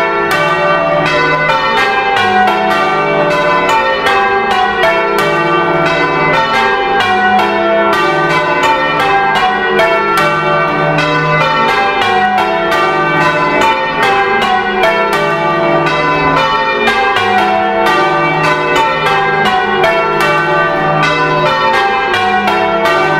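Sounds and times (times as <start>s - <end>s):
bells: 0.0s - 23.1s.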